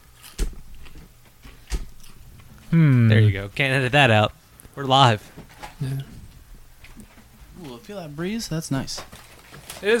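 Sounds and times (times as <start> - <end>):
chewing a chip: 0.0 - 1.4, 2.0 - 2.7
speech: 2.7 - 6.1, 7.8 - 9.2, 9.8 - 9.9.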